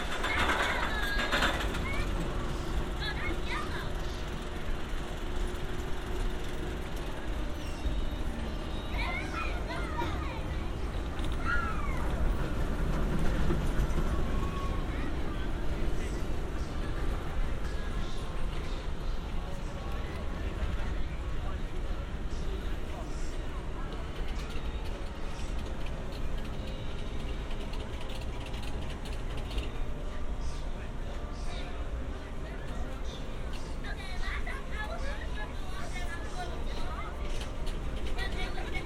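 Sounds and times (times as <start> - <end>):
clatters and squeaks: 0.0 - 17.0, 23.9 - 30.0, 35.9 - 38.8
crowd and machinery rumble at Santa Monica Pier: 0.0 - 38.8
voices chattering: 0.0 - 38.8.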